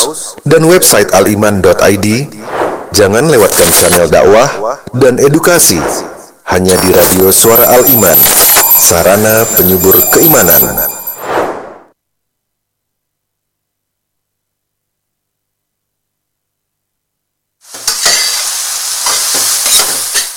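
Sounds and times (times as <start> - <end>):
speech: 0.0 - 11.0
food frying in a pan: 17.6 - 20.3.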